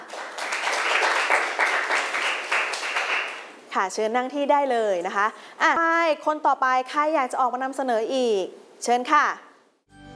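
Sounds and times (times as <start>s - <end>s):
classroom applause: 0.0s - 3.5s
speech: 3.8s - 9.4s.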